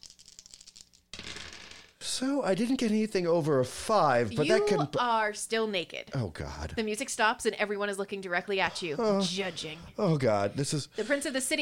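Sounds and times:
dice being rolled: 0.0s - 2.0s
speech: 2.2s - 11.6s.

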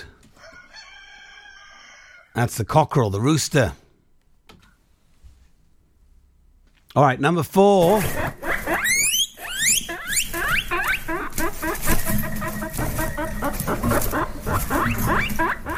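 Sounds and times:
speech: 2.4s - 3.8s, 7.0s - 8.4s
guinea pig squeaking: 8.0s - 15.7s.

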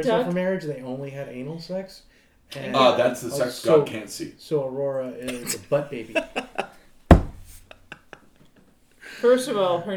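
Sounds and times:
speech: 0.0s - 6.7s, 9.2s - 9.9s
laughter: 5.2s - 6.9s, 7.6s - 8.7s
objects slammed on a table: 7.1s - 7.6s.

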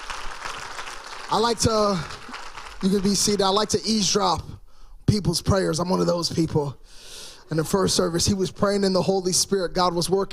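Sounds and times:
church audience clapping: 0.0s - 4.1s
speech: 1.3s - 2.2s, 2.8s - 4.5s, 5.1s - 10.3s.

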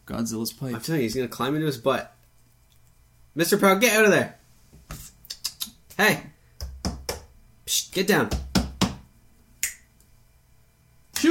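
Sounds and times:
speech: 0.1s - 2.2s, 3.4s - 5.0s, 6.0s - 6.3s, 7.7s - 8.4s
fingertips smacking against a wall corner: 6.6s - 7.3s, 8.3s - 9.1s.

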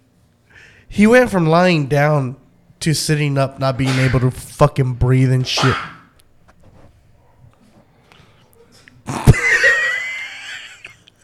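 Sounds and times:
speech: 0.9s - 5.9s
small sneeze: 5.6s - 6.1s
laughter: 9.2s - 11.1s.

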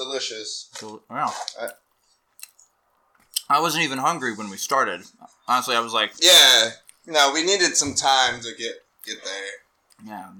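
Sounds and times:
speech: 0.2s - 1.8s, 3.5s - 10.3s
person chewing a sandwich: 1.7s - 3.5s.

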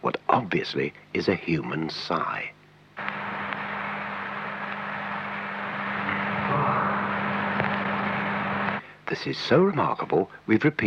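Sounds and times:
speech: 0.0s - 2.6s, 9.1s - 10.8s
electric heater fans humming warming the building: 0.5s - 9.8s.

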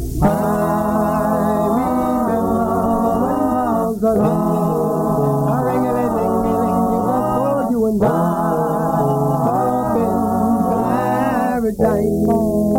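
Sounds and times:
recorded vocal group singing harmonies: 0.2s - 12.7s.

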